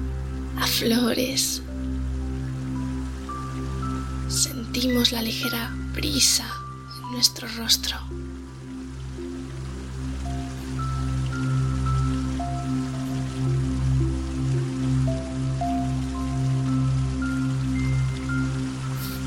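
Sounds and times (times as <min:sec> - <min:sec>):
water flowing from an old stone fountain: 0:00.0 - 0:19.2
speech: 0:00.6 - 0:01.8, 0:04.8 - 0:08.2.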